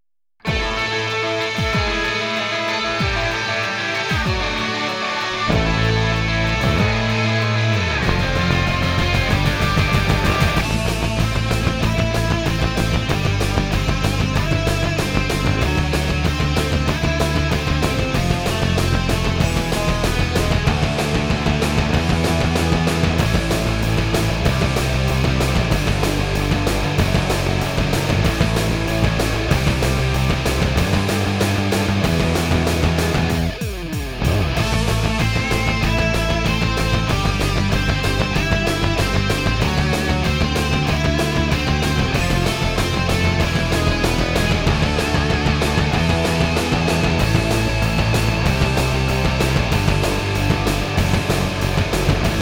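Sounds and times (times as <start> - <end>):
instrumental theme music: 0.4 - 52.3.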